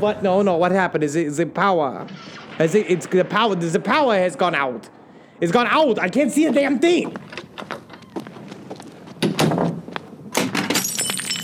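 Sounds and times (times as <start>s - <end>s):
speech: 0.0s - 7.9s
glass test tubes clattering and breaking: 10.7s - 11.4s.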